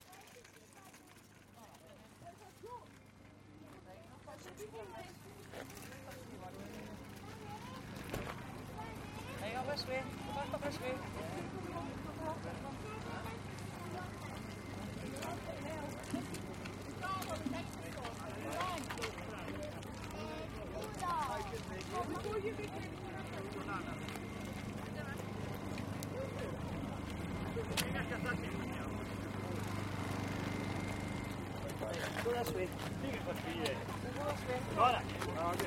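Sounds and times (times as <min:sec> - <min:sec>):
car boot sale ambience: 0:00.0 - 0:35.6.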